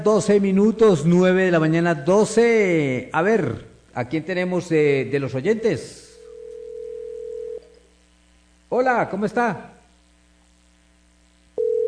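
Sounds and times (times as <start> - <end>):
speech: 0.0 - 6.0, 8.7 - 9.7
faint hum: 0.0 - 11.8
telephone line ringing tone: 6.2 - 7.8, 11.6 - 11.8.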